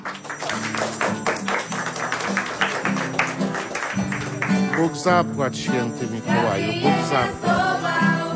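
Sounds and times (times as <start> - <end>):
applause: 0.0 - 6.6
speech: 4.8 - 8.2.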